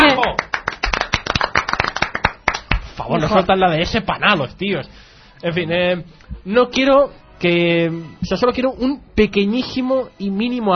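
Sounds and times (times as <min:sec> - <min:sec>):
small group clapping: 0:00.0 - 0:03.0
speech: 0:03.0 - 0:10.7.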